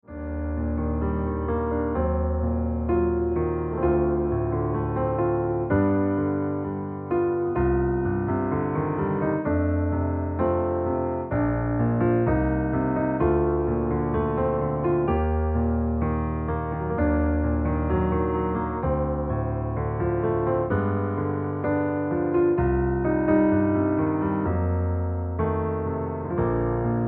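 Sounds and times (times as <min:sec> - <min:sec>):
piano music: 0:00.0 - 0:27.0.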